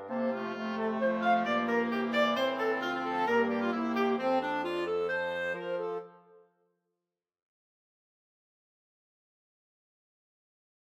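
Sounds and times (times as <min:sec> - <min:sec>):
carol tune: 0:00.0 - 0:06.4.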